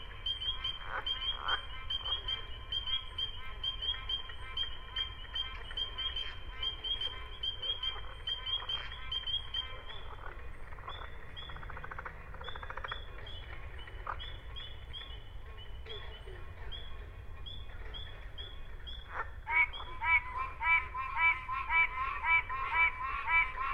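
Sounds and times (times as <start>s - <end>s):
whippoorbill frog calling in a bog: 0.0s - 23.7s.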